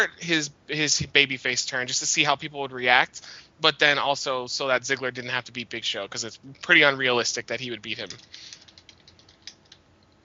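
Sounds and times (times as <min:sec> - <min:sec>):
speech: 0:00.0 - 0:08.6
typing on a keyboard: 0:08.0 - 0:09.8.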